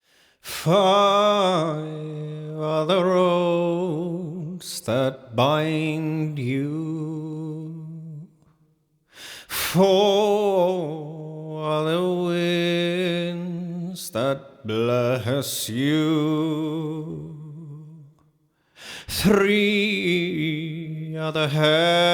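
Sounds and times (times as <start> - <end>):
English vocals at 160 BPM: 0.0 - 22.1.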